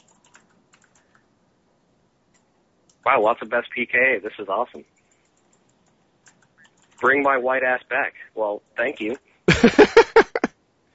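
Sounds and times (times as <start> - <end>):
typing on a computer keyboard: 0.0 - 1.3, 4.9 - 7.1
steady low hiss: 0.0 - 10.9
speech: 3.0 - 5.0, 7.0 - 10.0
laughter: 9.5 - 10.5.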